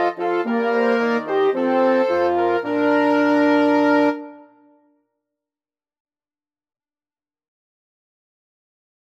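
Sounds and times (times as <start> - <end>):
flexible mixed ensemble of 6 players playing: 0.0 - 4.7.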